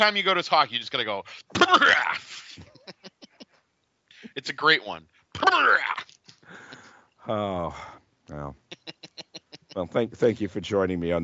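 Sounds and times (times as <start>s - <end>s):
speech: 0.0s - 2.7s, 4.4s - 6.0s, 7.2s - 8.6s, 9.8s - 11.2s
raspy throat clearing: 1.5s - 2.7s.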